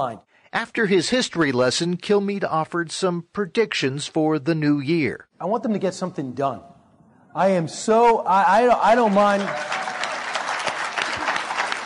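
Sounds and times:
speech: 0:00.0 - 0:06.7, 0:07.4 - 0:09.8
conservative audience clapping during a political talk: 0:08.6 - 0:11.8.

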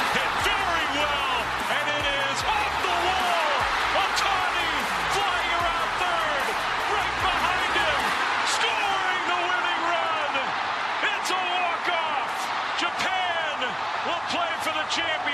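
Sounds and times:
stadium crowd cheering after a baseball hit: 0:00.0 - 0:15.3.

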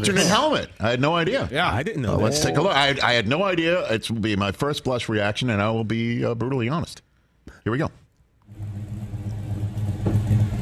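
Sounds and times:
speech: 0:00.0 - 0:07.0, 0:07.6 - 0:08.0
Ford Mustang engine rumbling: 0:08.5 - 0:10.6.

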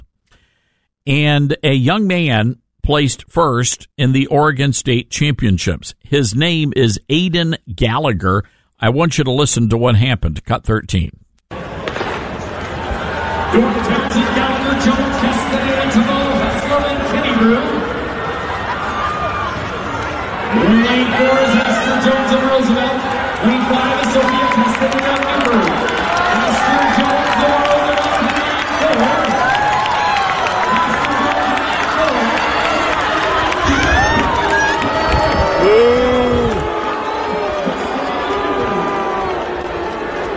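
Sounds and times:
speech: 0:01.0 - 0:11.7, 0:13.5 - 0:15.4
people booing in the stands: 0:11.6 - 0:40.3.

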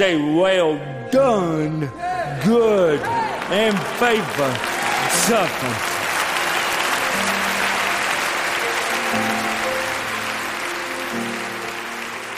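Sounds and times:
speech: 0:00.0 - 0:06.0
thunderous applause: 0:03.0 - 0:12.3.

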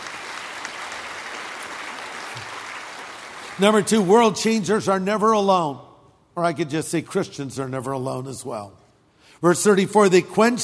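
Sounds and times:
crowd applause: 0:00.0 - 0:03.6
speech: 0:03.6 - 0:08.8, 0:09.4 - 0:10.6.

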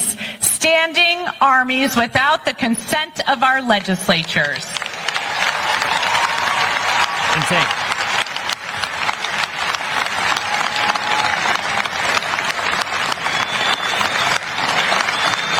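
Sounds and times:
speech: 0:00.6 - 0:04.8, 0:07.4 - 0:07.8
audience applauding at length: 0:04.4 - 0:15.5.

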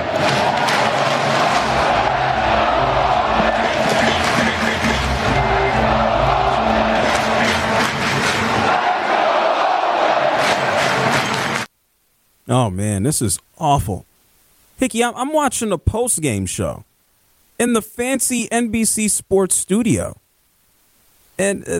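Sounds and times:
stadium crowd cheering: 0:00.0 - 0:11.7
speech: 0:12.8 - 0:14.1, 0:14.8 - 0:16.9, 0:17.6 - 0:20.2, 0:21.4 - 0:21.7.

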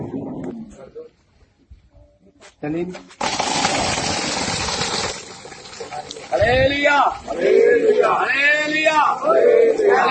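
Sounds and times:
speech: 0:02.6 - 0:04.2, 0:06.1 - 0:10.0
water gushing from a running borewell pump: 0:03.2 - 0:07.1.

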